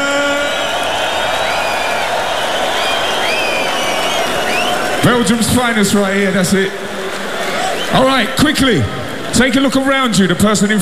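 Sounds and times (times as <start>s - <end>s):
festival crowd cheering and applauding at Tomorrowland: 0.0s - 10.2s
festival crowd whistles and whoops: 0.1s - 5.0s, 7.5s - 8.0s
speech: 5.0s - 6.9s, 7.9s - 10.8s.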